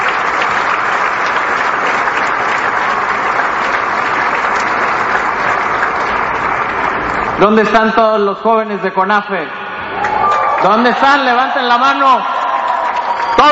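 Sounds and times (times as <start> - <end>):
applause from a large crowd: 0.0 - 8.0, 10.0 - 13.5
speech: 7.4 - 9.6, 10.6 - 12.3, 13.4 - 13.5.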